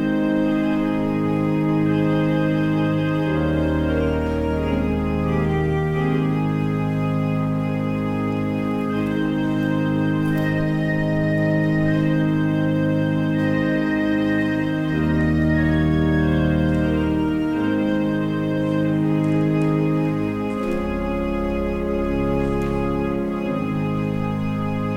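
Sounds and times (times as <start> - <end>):
organ music: 0.0 - 24.9.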